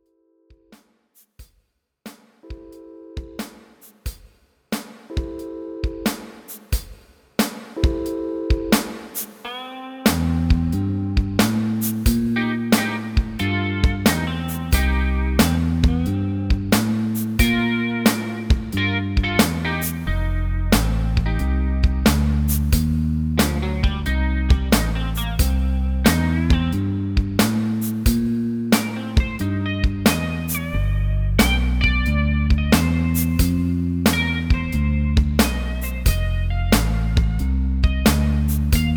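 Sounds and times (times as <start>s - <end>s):
MIDI blues music: 7.8s - 38.9s.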